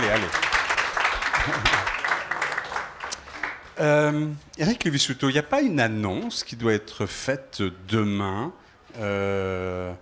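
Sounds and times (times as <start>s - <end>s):
audience applause: 0.0s - 3.7s
speech: 0.1s - 0.5s, 1.5s - 1.8s, 3.8s - 10.0s.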